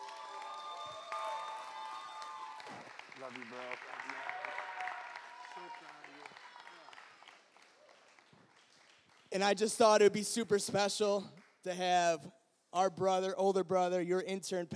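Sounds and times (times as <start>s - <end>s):
audience round of applause: 0.0s - 9.4s
speech: 2.7s - 4.6s, 5.6s - 6.5s, 9.3s - 14.7s.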